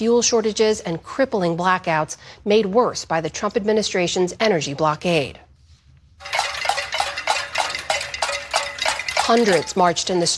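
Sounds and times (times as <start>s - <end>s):
speech: 0.0s - 5.4s, 9.3s - 10.3s
protesters banging pots and pans: 6.2s - 10.3s.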